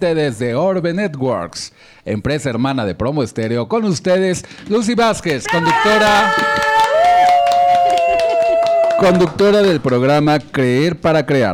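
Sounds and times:
speech: 0.0s - 6.9s, 9.0s - 11.5s
audience applause: 4.5s - 10.7s.

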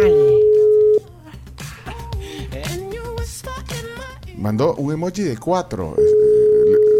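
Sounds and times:
telephone tone during a call on a radio program: 0.0s - 1.0s, 6.0s - 6.9s
speech: 4.4s - 6.2s.

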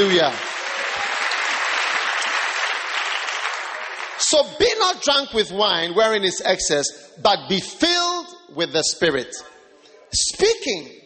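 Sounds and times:
speech: 0.0s - 0.5s, 4.3s - 11.0s
audience applause: 0.0s - 4.5s.

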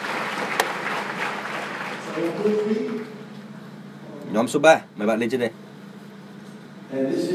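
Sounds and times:
group applauding a man's idea during a team presentation: 0.0s - 3.2s
speech: 2.2s - 3.0s, 4.3s - 5.6s, 6.9s - 7.3s.

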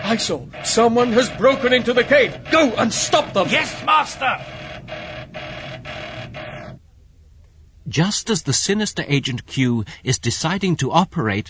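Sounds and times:
emergency warning signal: 0.0s - 6.8s
speech: 0.1s - 4.6s, 7.9s - 11.4s.

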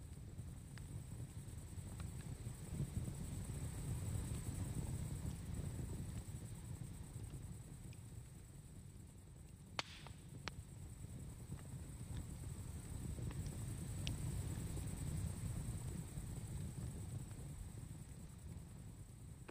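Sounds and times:
campfire crackling: 0.1s - 19.4s
campfire pop: 9.8s - 10.6s.

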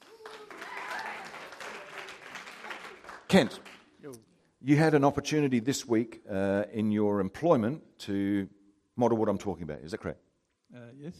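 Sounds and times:
audience clapping to welcome a man at a morning gathering: 0.0s - 4.0s
speech: 3.3s - 11.1s.

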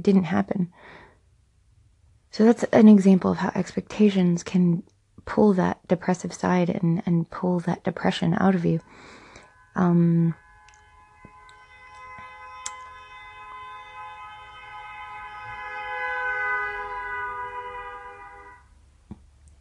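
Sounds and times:
speech: 0.0s - 1.0s, 2.3s - 9.2s, 9.8s - 10.4s
car horn honking continuously: 8.8s - 18.8s.

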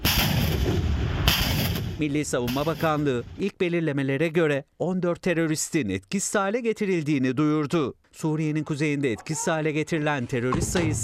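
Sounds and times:
howitzer fire: 0.0s - 3.1s
speech: 2.0s - 11.0s.

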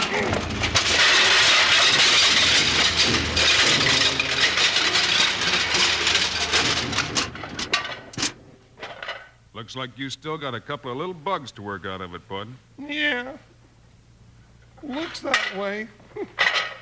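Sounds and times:
homemade dishwashing machine starting and running: 0.0s - 12.4s, 14.8s - 16.8s
speech: 9.7s - 13.5s, 14.8s - 16.5s.

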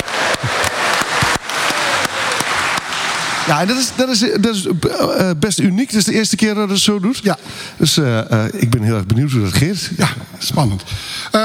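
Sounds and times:
audience applause: 0.0s - 5.3s
speech: 3.5s - 11.4s.

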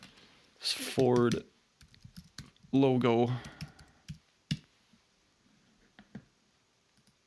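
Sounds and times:
speech: 0.7s - 1.5s, 2.7s - 3.6s
computer keyboard typing a web search: 1.1s - 2.7s, 3.4s - 4.6s.

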